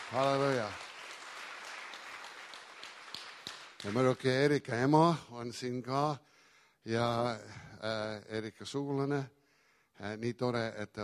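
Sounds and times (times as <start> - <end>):
faint church congregation applause for the newly baptized: 0.0 - 4.3
speech: 0.1 - 0.9, 3.8 - 9.4, 10.0 - 11.0.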